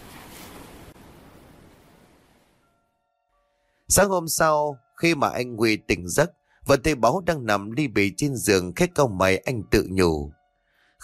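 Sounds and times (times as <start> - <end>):
crashing ocean waves: 0.0 - 2.6
speech: 3.9 - 10.4.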